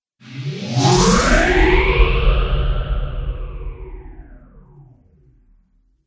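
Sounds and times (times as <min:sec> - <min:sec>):
space phaser swoosh: 0:00.2 - 0:05.0
trailer hit: 0:00.4 - 0:04.8.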